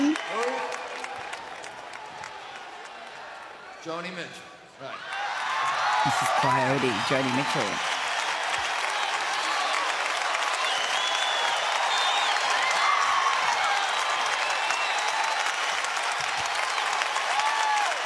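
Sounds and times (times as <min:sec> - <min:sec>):
concert audience clapping: 0:00.0 - 0:03.7, 0:05.0 - 0:18.0
speech: 0:03.8 - 0:05.2, 0:06.0 - 0:07.9.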